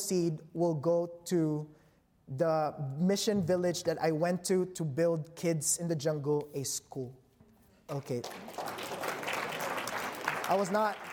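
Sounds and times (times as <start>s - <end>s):
speech: 0.1s - 7.2s, 7.9s - 9.0s, 10.5s - 11.1s
audience clapping: 7.9s - 11.1s.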